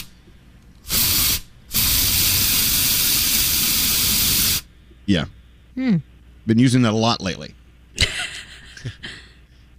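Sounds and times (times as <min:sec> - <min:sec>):
aerosol can spraying: 0:00.8 - 0:04.7
speech: 0:05.1 - 0:07.6
laughter: 0:08.0 - 0:09.4.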